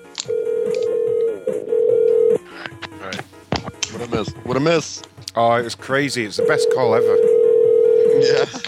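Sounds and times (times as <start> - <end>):
ringback tone of an outgoing telephone call: 0.3 - 2.4, 6.4 - 8.2
speech: 4.2 - 7.3, 8.2 - 8.6.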